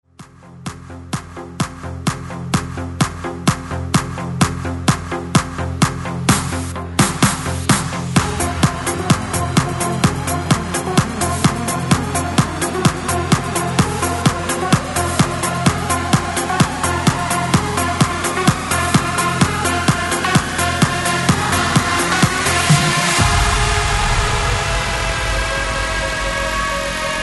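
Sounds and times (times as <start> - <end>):
breakbeat mix: 0.2 - 27.2.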